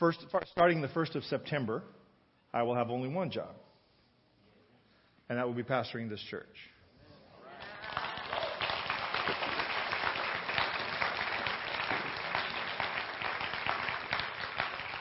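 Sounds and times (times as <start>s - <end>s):
speech: 0.0s - 3.7s, 5.3s - 6.7s
audience clapping: 7.6s - 14.9s.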